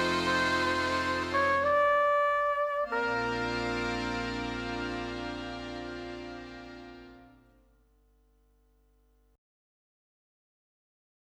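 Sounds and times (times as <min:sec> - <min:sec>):
accordion: 0:00.0 - 0:07.6
trumpet: 0:00.0 - 0:07.6.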